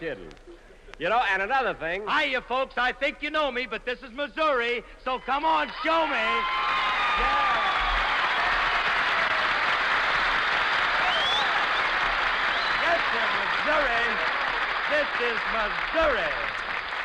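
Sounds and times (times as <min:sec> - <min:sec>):
speech: 0:00.0 - 0:07.8, 0:15.2 - 0:16.5
audience applause: 0:05.9 - 0:17.0.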